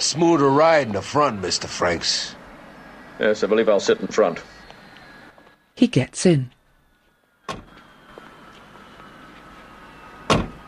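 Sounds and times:
faint low hum: 0:00.0 - 0:10.6
speech: 0:00.1 - 0:02.4, 0:03.2 - 0:04.6, 0:05.8 - 0:06.6
hearse rear door shutting: 0:07.5 - 0:07.8, 0:10.2 - 0:10.6.

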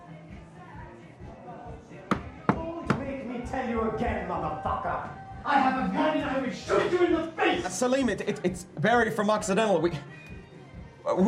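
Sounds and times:
knocking on an apartment door: 0:02.1 - 0:03.2
speech: 0:03.5 - 0:10.3, 0:11.1 - 0:11.2.

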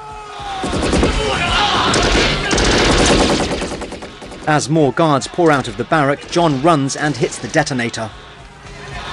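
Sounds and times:
machine gun fire: 0:00.6 - 0:04.8
speech: 0:04.5 - 0:08.3.

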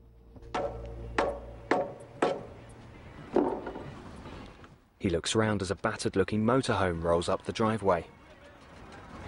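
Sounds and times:
hammering wooden boards out of porch steps: 0:00.5 - 0:02.6
speech: 0:05.0 - 0:08.2.

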